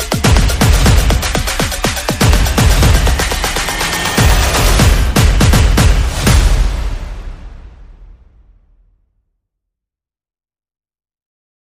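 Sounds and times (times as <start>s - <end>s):
percussion: 0.0s - 8.4s
sound effects: 0.0s - 8.6s.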